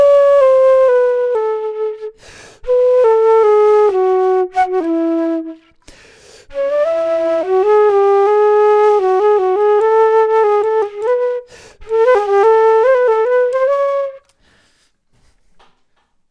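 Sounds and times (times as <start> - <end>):
flute: 0.0 - 14.4.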